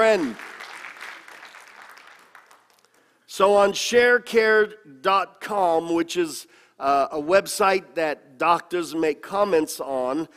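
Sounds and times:
speech: 0.0 - 0.5, 3.4 - 10.3
crowd applause: 0.0 - 3.0.

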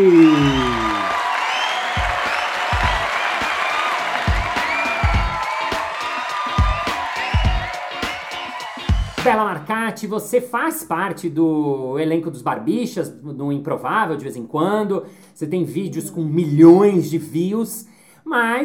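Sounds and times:
speech: 0.0 - 0.5, 9.9 - 18.6
applause: 0.0 - 9.4.

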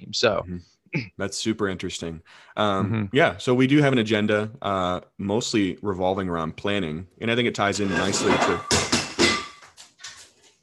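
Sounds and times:
speech: 0.1 - 8.8
pot blown over by the wind crashing: 7.9 - 9.7.

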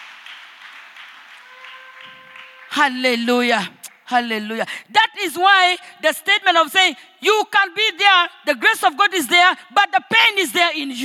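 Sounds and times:
crowd audience clapping: 0.0 - 4.1
speech: 2.8 - 11.0.

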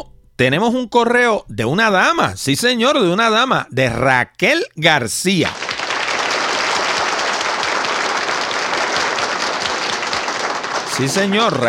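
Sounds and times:
speech: 0.0 - 5.6, 11.0 - 11.6
crowd applause: 5.5 - 11.6.

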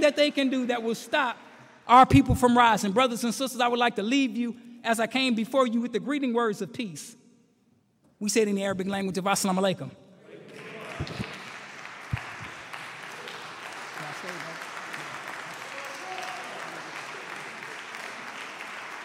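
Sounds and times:
speech: 0.0 - 7.2, 8.2 - 10.0
crowd applauding: 10.3 - 19.0.

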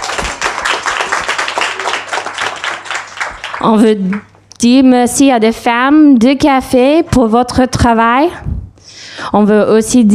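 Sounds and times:
audience applause: 0.0 - 4.3
speech: 3.6 - 8.5, 9.2 - 10.1.

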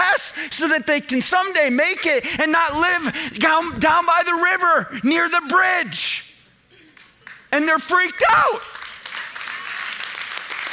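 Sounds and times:
speech: 0.3 - 6.3, 7.5 - 8.7
a few parents clapping: 6.9 - 7.5, 8.5 - 10.7.

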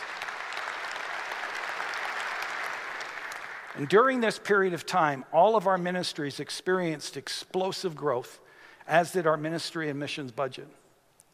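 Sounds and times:
audience clapping: 0.0 - 4.3
speech: 3.8 - 10.8.

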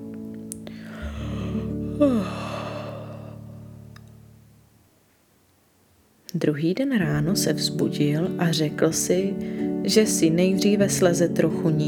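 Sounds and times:
person yawning: 0.9 - 3.6
speech: 2.0 - 2.5, 6.3 - 11.8.

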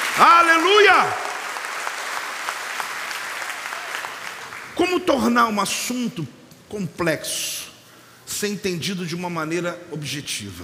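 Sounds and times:
audience applause: 0.0 - 4.8
speech: 0.2 - 1.2, 4.9 - 7.7, 8.3 - 10.6.

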